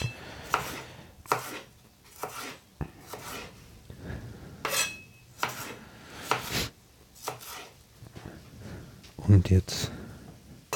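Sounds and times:
knife cutting red bell pepper into strips on a cutting board: 0.0 - 3.4, 5.4 - 6.5
speech: 9.3 - 9.9.

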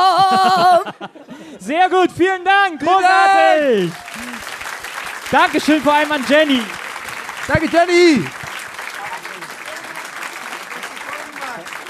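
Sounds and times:
laughter: 0.0 - 1.8
speech: 0.3 - 4.2, 5.3 - 6.8, 7.5 - 8.4
audience applause: 2.9 - 11.8.

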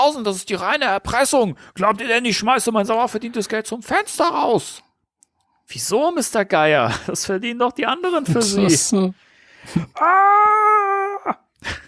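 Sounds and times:
speech: 0.0 - 4.9, 5.7 - 11.8
breathy gasps: 9.2 - 10.0
man screaming: 10.0 - 11.5.

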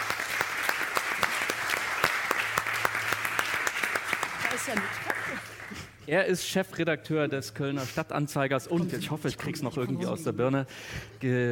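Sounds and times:
audience applause: 0.0 - 5.9
speech: 4.7 - 11.4.

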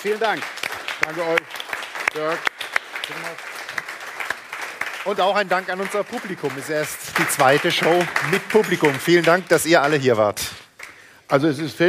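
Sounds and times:
speech: 0.0 - 3.5, 5.0 - 10.6, 11.3 - 11.8
audience applause: 0.0 - 11.0.

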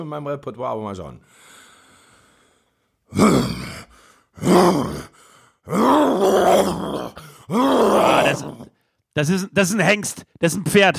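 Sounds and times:
speech: 0.0 - 1.5, 3.1 - 3.6, 4.4 - 10.9
person imitating a lion's roar: 3.1 - 5.1, 5.7 - 8.7.

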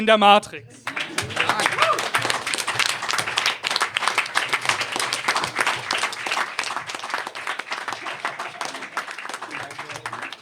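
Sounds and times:
speech: 0.0 - 0.9
laughter: 0.2 - 10.4
audience applause: 0.4 - 10.4.

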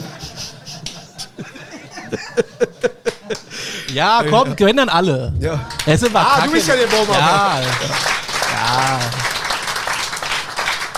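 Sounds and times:
laughter: 0.0 - 4.8, 5.6 - 9.3
speech: 2.1 - 2.7, 3.9 - 8.1, 8.7 - 9.2
audience applause in a show: 5.6 - 10.9.

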